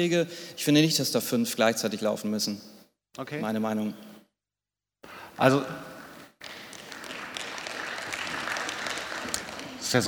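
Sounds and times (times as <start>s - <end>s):
speech: 0.0s - 4.2s, 5.4s - 5.9s
small audience applauding at a conference session: 6.4s - 10.0s.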